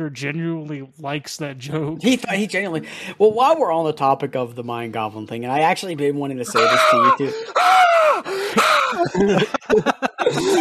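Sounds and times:
speech: 0.0 - 10.5
laughter: 6.5 - 7.8, 8.4 - 10.5
man screaming recorded on phone: 6.5 - 9.1.

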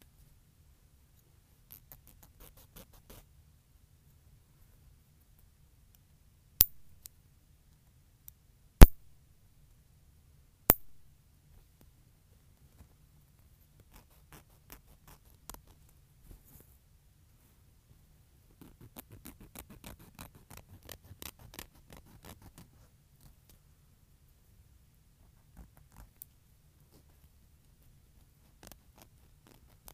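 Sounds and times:
low quiet hum: 0.0 - 29.9
nail filing: 1.7 - 3.2, 13.8 - 15.8, 18.6 - 22.7, 28.5 - 29.9.

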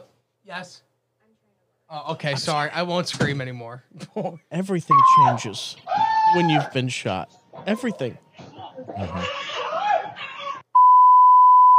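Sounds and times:
speech: 0.5 - 0.9, 1.9 - 9.4
person talking and laughing: 3.9 - 4.8, 7.9 - 10.6
censor bleep over swearing: 10.8 - 11.7.

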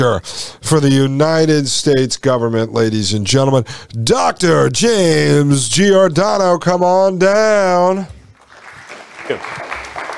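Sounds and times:
speech: 0.0 - 8.2, 9.3 - 9.6
crowd applause: 8.4 - 10.1.

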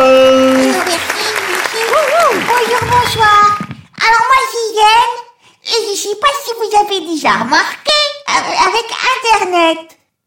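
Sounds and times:
audience applause: 0.0 - 3.7
speech: 5.1 - 10.0.

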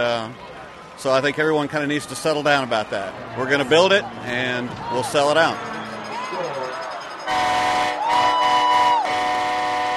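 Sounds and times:
speech: 0.0 - 5.7
stadium crowd cheering: 0.5 - 9.9
train horn blowing at stadium: 7.3 - 9.9.

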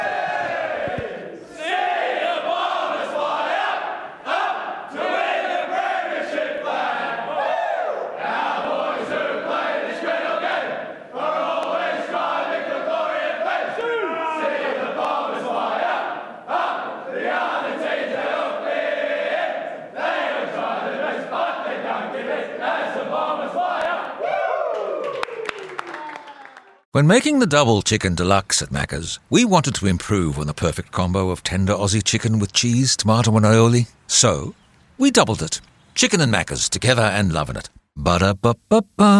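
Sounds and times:
football team singing victory song in change rooms: 0.0 - 24.2
cheers: 23.8 - 26.9
speech: 27.0 - 39.1.

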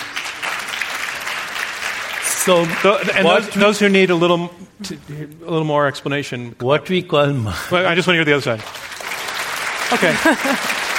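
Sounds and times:
audience clapping: 0.0 - 4.4, 8.1 - 10.9
speech: 2.4 - 8.8, 9.9 - 10.7
laughter: 9.9 - 10.9.

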